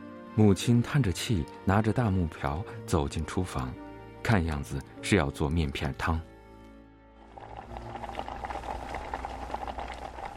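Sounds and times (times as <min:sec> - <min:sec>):
speech: 0:00.4 - 0:06.3
water at a rolling boil in a pot: 0:07.2 - 0:10.3.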